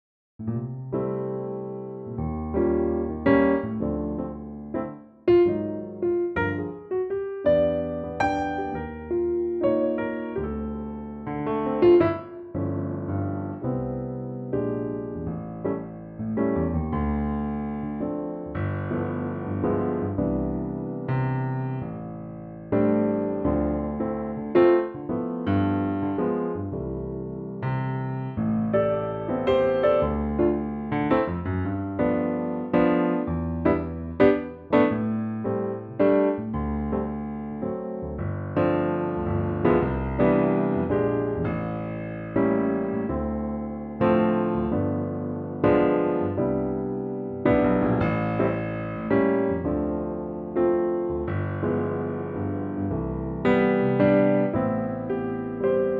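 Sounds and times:
piano track in C: 0.4s - 55.9s.

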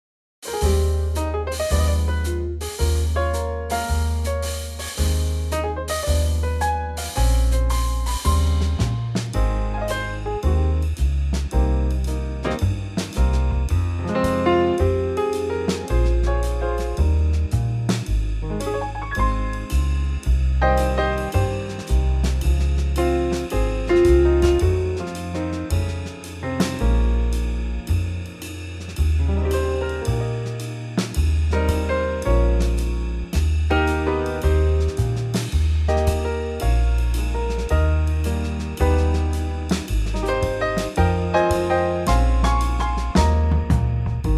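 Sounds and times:
trio music in A flat: 0.4s - 44.3s.

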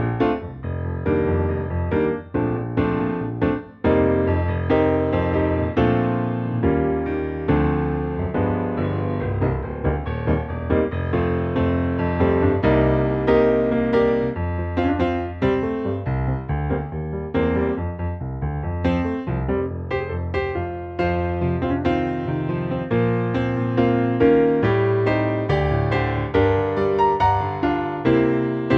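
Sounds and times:
piano playing B flat: 0.0s - 28.7s.

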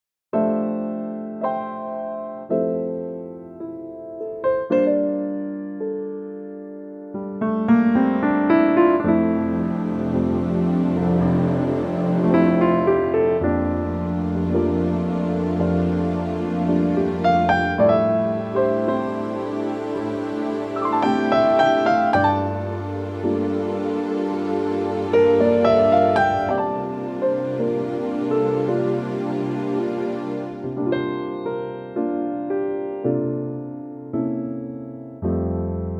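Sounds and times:
piano in F: 0.3s - 35.9s
strings: 8.4s - 32.2s.

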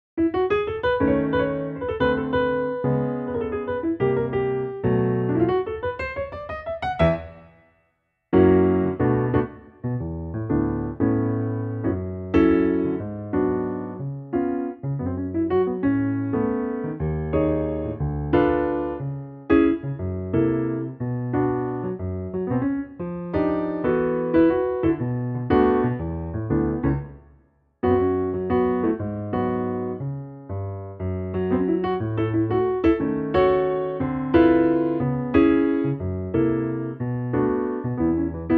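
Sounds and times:
piano track: 0.2s - 38.5s.

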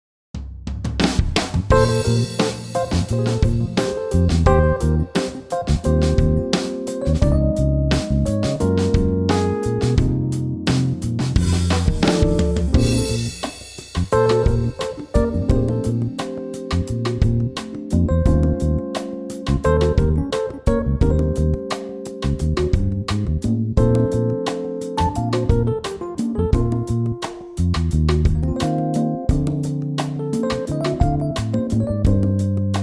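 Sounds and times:
smooth backing track in B flat: 1.7s - 32.8s.

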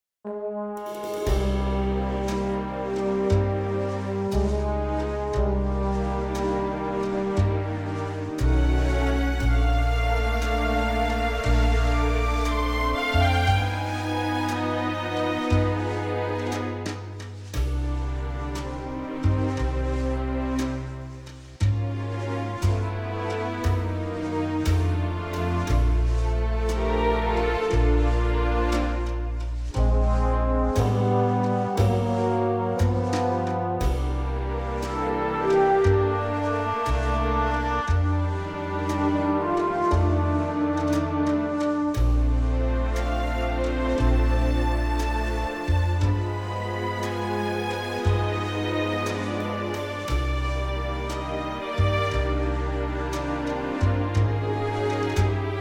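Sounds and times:
orchestral music in B flat: 0.3s - 55.5s.

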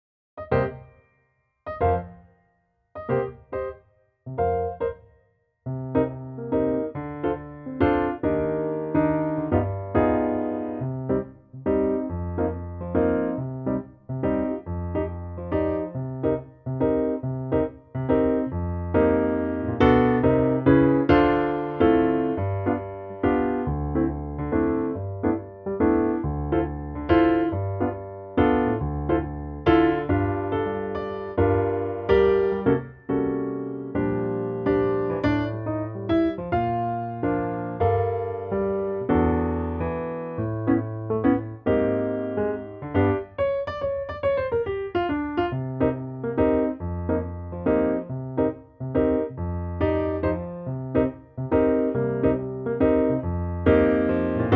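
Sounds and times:
piano in B flat: 0.4s - 54.5s.

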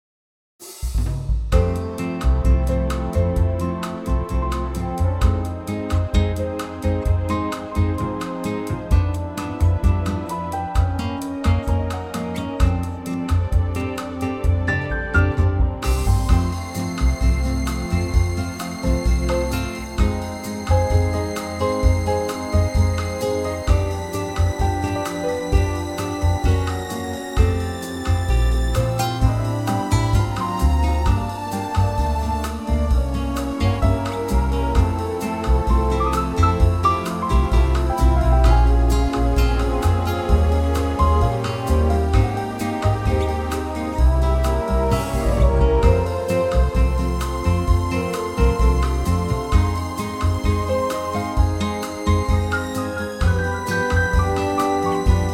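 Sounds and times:
latin music: 0.9s - 55.3s.

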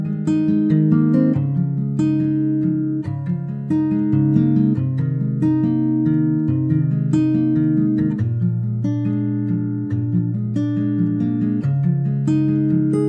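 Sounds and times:
intimate acoustic guitar arrangement in F minor: 0.0s - 13.0s.

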